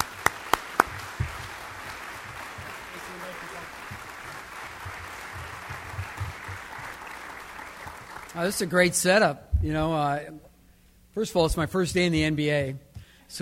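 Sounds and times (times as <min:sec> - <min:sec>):
audience applause at a Nebraska broadcasters' association event: 0:00.0 - 0:08.8
speech: 0:08.4 - 0:10.4, 0:11.2 - 0:13.4.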